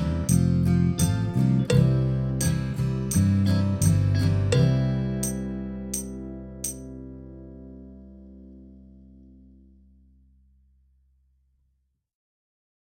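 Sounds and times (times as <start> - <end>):
drum kit playalong: 0.0 - 6.8.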